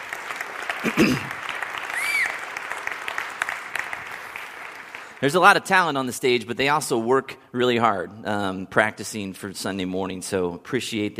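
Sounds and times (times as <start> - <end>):
crowd clapping: 0.0 - 5.6
speech: 0.8 - 1.4, 5.2 - 11.1
cheers and whoops: 1.8 - 2.6.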